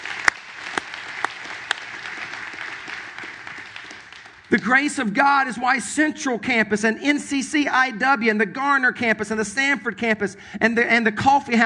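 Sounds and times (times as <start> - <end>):
audience clapping: 0.0 - 5.0
speech: 4.5 - 11.6.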